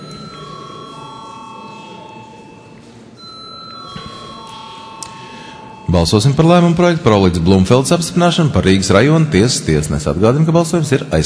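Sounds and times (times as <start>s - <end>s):
parliament chamber electronic bell ringing: 0.0s - 7.5s
murmur of voices in a large hall: 0.0s - 11.2s
speech: 5.9s - 11.2s.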